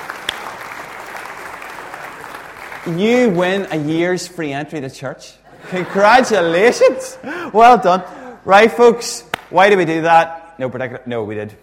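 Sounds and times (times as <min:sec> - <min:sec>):
audience applause for a rock-paper-scissors winner: 0:00.0 - 0:04.0
speech: 0:02.8 - 0:11.6
laughter: 0:05.5 - 0:08.4.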